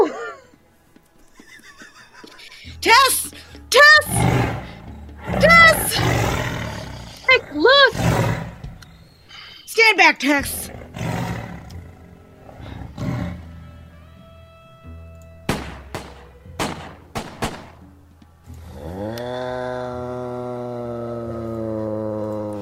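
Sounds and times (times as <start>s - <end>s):
laughter: 0.0s - 4.4s
tiger growling: 2.6s - 9.4s, 10.4s - 13.8s, 18.5s - 22.6s
speech: 9.9s - 10.7s.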